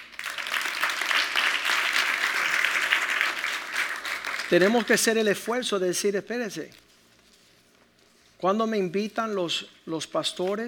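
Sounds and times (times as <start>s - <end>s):
audience applauding: 0.0s - 5.1s
speech: 4.5s - 6.8s, 8.4s - 10.6s.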